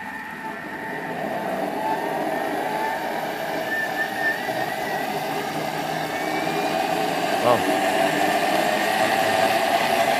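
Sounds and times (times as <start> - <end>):
food processor pureeing zucchini: 0.0 - 10.1.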